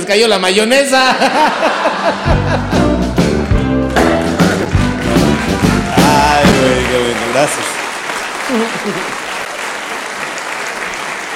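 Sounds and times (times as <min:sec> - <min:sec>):
speech: 0:00.1 - 0:02.7, 0:06.6 - 0:07.8, 0:08.5 - 0:09.2
laughter: 0:01.0 - 0:03.1, 0:08.4 - 0:09.3
audience applause: 0:01.8 - 0:11.3
person cheering: 0:05.8 - 0:07.7, 0:08.4 - 0:09.2.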